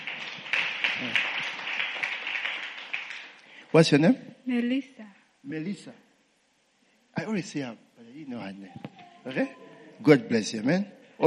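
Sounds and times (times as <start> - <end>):
audience clapping hands: 0.0 - 3.7
speech: 3.7 - 6.0, 7.2 - 11.2.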